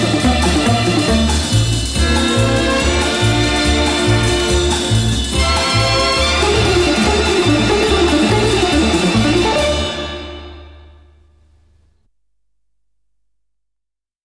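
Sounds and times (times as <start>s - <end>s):
orchestra playing samba: 0.0s - 10.9s.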